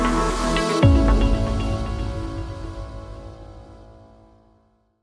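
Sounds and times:
positive flow music stinger: 0.1s - 3.7s.

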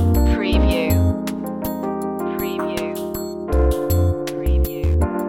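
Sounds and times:
town beat loop: 0.2s - 1.1s, 2.3s - 5.1s.

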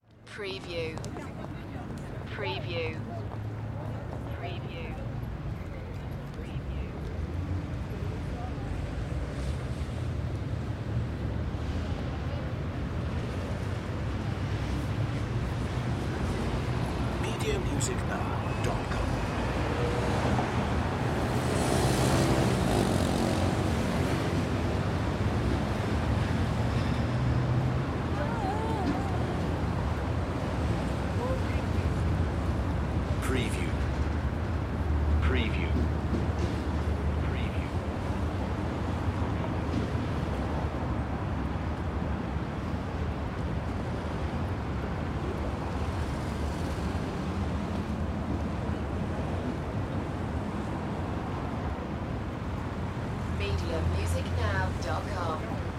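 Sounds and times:
city street ambience in France: 0.0s - 55.7s.

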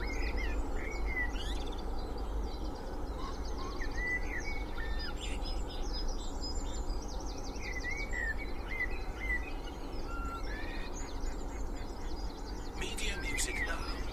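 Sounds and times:
spring dawn chorus of birds in Cheshire UK: 0.0s - 14.1s
noisy distant traffic noise in Cheshire UK: 11.1s - 14.1s.

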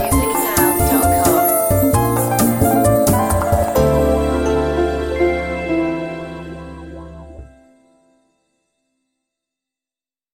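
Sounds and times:
lounge piano: 0.0s - 7.8s.

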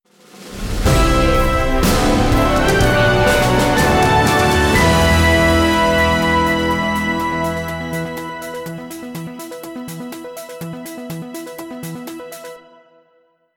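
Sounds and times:
news flash jingle: 0.8s - 10.1s.

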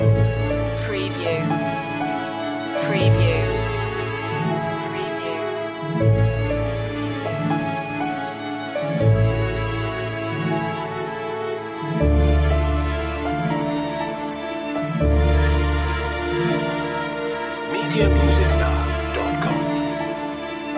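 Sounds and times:
waltz music: 0.0s - 20.7s.

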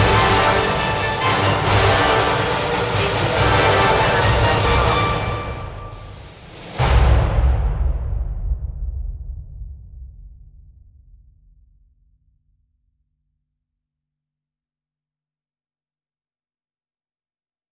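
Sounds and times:
brass percussion: 0.0s - 8.5s.

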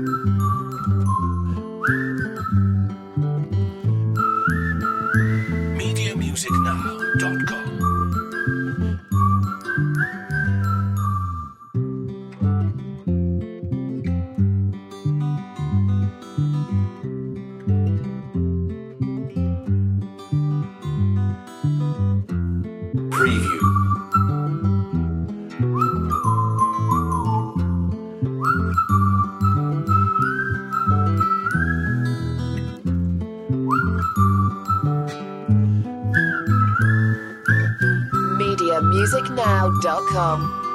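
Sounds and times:
whistles: 0.0s - 12.1s, 23.1s - 32.9s, 33.5s - 40.7s
bass: 0.0s - 40.7s
guitars: 0.0s - 40.7s.

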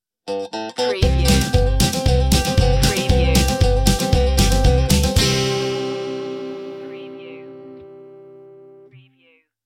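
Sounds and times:
music sting: 1.0s - 8.2s.

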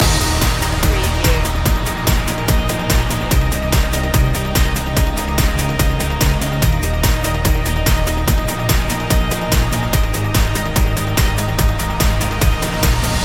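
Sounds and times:
fresh energetic music loop: 0.0s - 13.2s.

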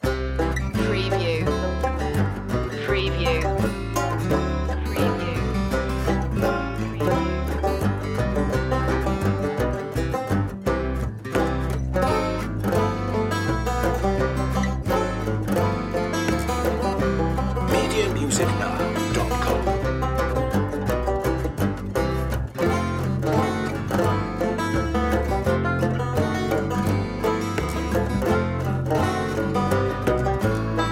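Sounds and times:
banjo rag loop: 0.0s - 30.9s.

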